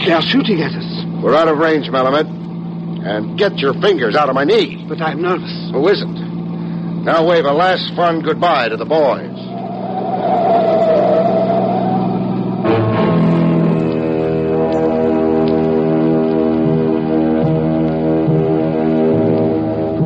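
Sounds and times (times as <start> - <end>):
speech: 0.1 - 2.4, 3.0 - 6.2, 7.1 - 9.4
banana freighter ship whistle: 9.2 - 19.9.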